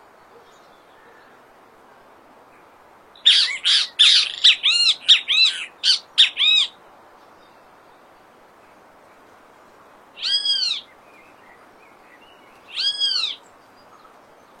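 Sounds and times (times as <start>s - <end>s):
faint steady hiss: 0.0s - 14.5s
great kiskadee calls: 3.2s - 6.8s, 10.2s - 10.9s, 12.6s - 14.1s.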